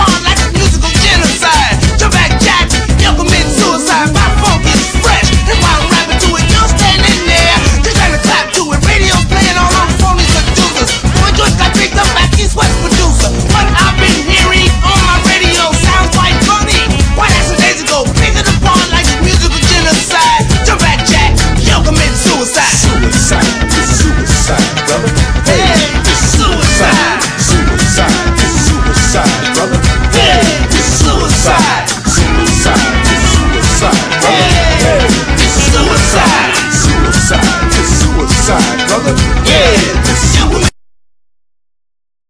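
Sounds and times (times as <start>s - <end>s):
cacophony: 0.0s - 40.7s.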